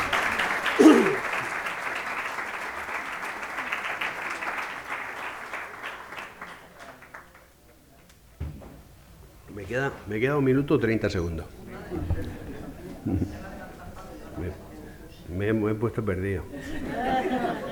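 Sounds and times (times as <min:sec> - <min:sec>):
audience applause: 0:00.0 - 0:07.5
speech: 0:09.7 - 0:12.1, 0:15.4 - 0:17.6
laughter: 0:11.9 - 0:13.6, 0:16.5 - 0:17.6.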